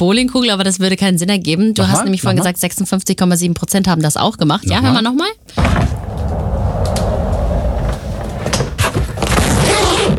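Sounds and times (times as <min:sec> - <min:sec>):
speech: 0:00.0 - 0:06.5
rolling suitcase wheels rolling: 0:05.8 - 0:10.1.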